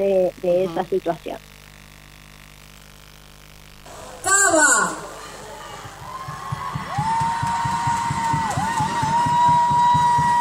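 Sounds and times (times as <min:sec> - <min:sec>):
speech: 0:00.0 - 0:01.5
crowd acclamation: 0:03.9 - 0:10.3.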